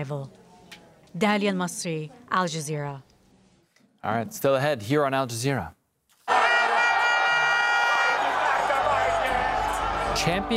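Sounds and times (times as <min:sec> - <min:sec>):
speech: 0:00.0 - 0:00.4, 0:01.1 - 0:03.1, 0:04.0 - 0:05.8, 0:10.2 - 0:10.5
huge football crowd cheering: 0:06.2 - 0:10.5.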